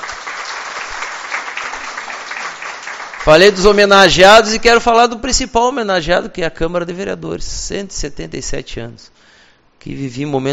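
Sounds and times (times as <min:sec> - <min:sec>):
audience clapping: 0:00.0 - 0:03.9
speech: 0:03.2 - 0:10.5.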